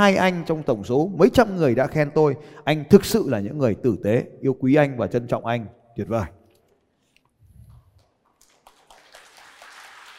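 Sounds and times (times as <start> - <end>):
speech: 0.0 - 6.4
group applause: 8.0 - 10.1.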